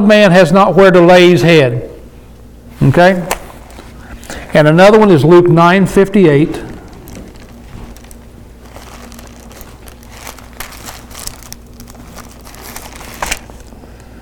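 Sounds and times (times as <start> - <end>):
speech: 0.0 - 1.9, 2.8 - 3.4, 4.3 - 6.7
paper book pages turning: 3.3 - 4.5, 6.6 - 14.1.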